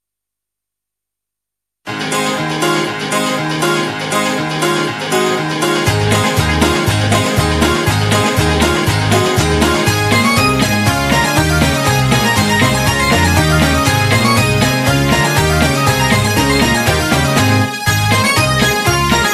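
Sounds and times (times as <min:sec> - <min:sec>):
baroque hoedown music: 0:01.9 - 0:19.3.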